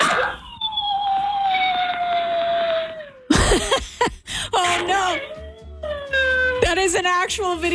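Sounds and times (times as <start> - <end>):
dog howling: 0.0 - 3.3, 4.6 - 7.0
speech: 6.8 - 7.7.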